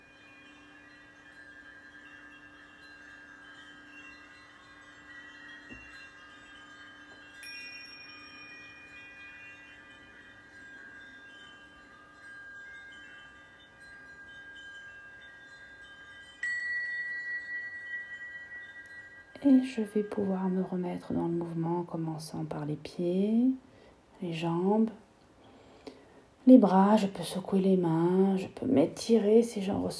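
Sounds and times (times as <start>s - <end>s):
bells ringing: 0.0s - 21.7s
speech: 19.4s - 25.0s, 26.4s - 29.9s.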